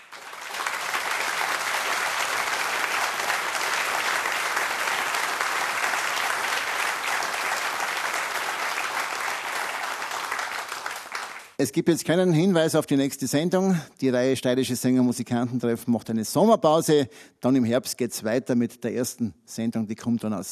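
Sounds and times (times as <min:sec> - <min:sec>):
audience applause: 0:00.0 - 0:11.6
speech: 0:11.6 - 0:20.4.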